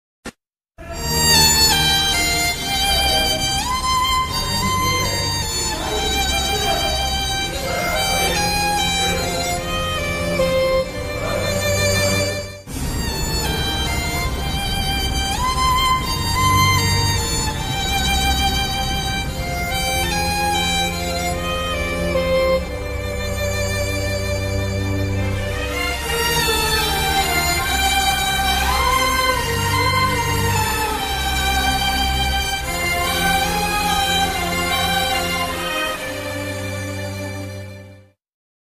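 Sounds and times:
sad violin background music: 0:00.8 - 0:38.2.

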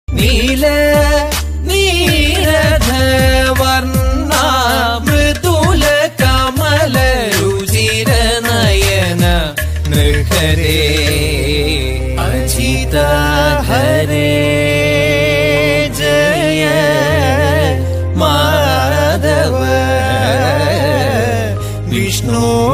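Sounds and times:
Kathakali dance-drama music: 0:00.1 - 0:22.6.

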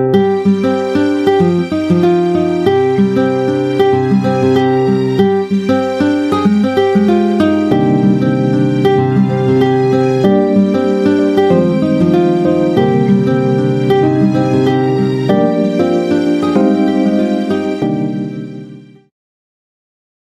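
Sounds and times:
soft instrumental ringtone: 0:00.2 - 0:19.0.

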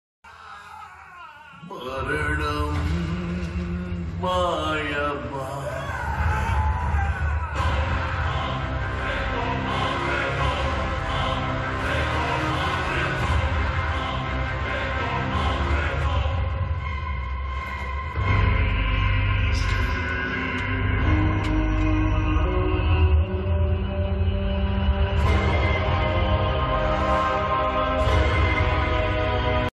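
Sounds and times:
movie climax background music ringtone: 0:01.6 - 0:29.7.

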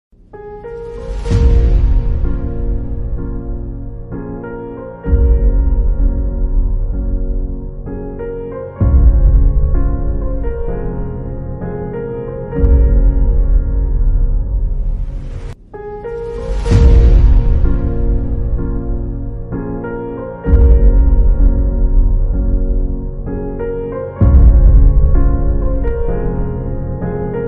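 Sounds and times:
emotional background music: 0:00.2 - 0:27.4.

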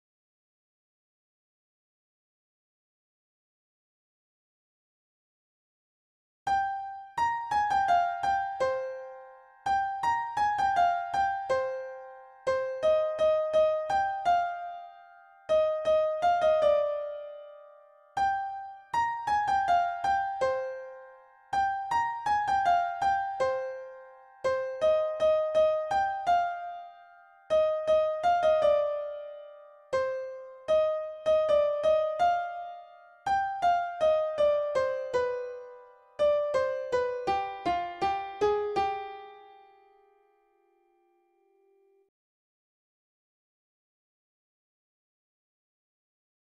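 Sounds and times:
background piano music: 0:06.5 - 0:40.7.

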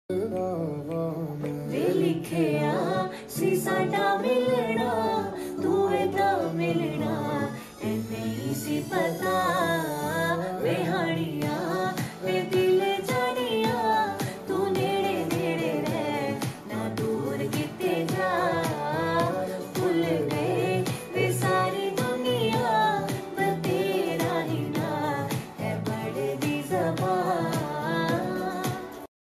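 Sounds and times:
woman singing a song: 0:00.1 - 0:29.1.

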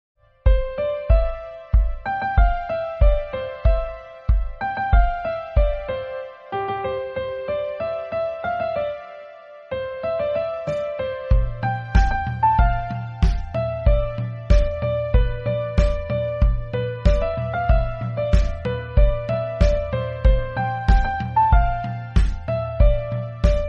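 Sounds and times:
romantic Hindi ringtone music: 0:00.6 - 0:23.6.

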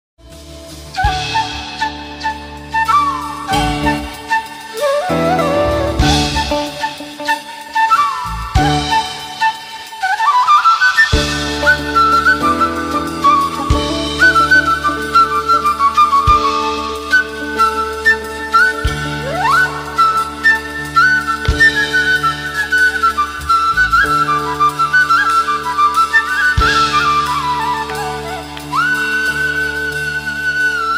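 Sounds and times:
background music song played by flute: 0:00.2 - 0:30.9.

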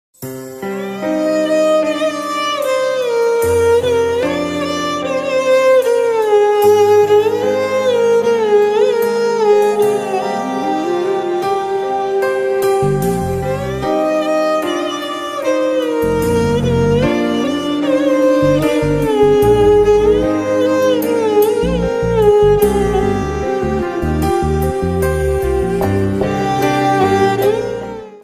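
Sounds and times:
emotional Christian background music ringtone: 0:00.6 - 0:28.2.

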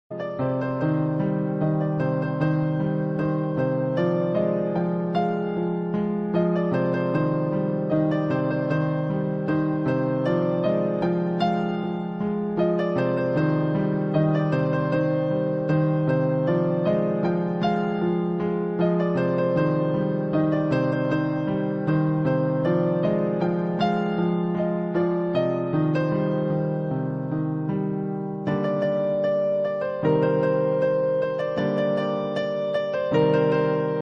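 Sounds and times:
piano ringtone: 0:00.1 - 0:34.0.

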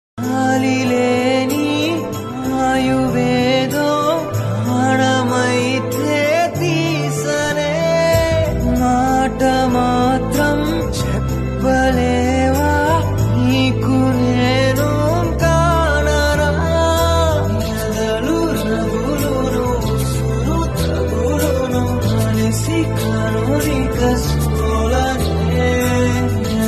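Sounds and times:
Telugu love songs: 0:00.2 - 0:26.6.

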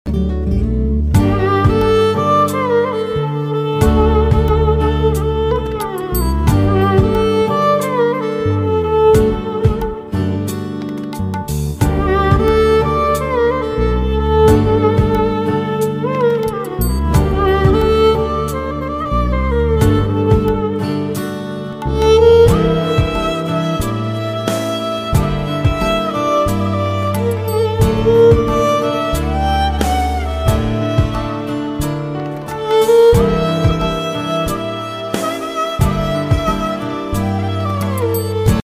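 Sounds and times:
sad instrumental shayari background music ringtone: 0:00.1 - 0:38.6.

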